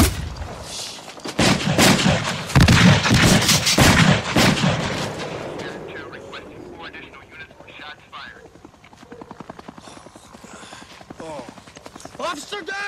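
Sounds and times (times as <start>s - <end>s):
gunshots: 0.0s - 0.4s, 1.4s - 7.0s.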